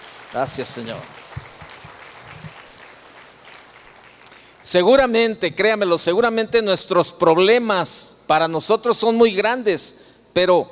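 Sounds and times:
audience applause: 0.0s - 4.7s
speech: 0.3s - 1.2s, 4.7s - 10.7s.

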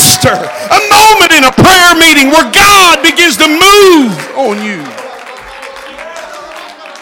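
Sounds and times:
speech: 0.2s - 5.0s
audience clapping hands: 2.2s - 6.9s.

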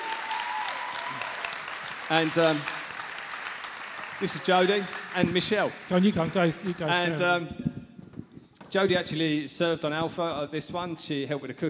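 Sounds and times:
loud voiced whoop: 0.0s - 1.5s
crowd applauding: 0.0s - 7.4s
speech: 2.1s - 2.8s, 4.2s - 7.6s, 8.7s - 11.6s.

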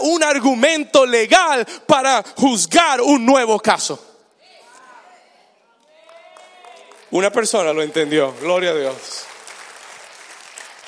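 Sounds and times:
speech: 0.2s - 4.1s, 7.1s - 9.3s
audience applause: 6.0s - 10.8s.

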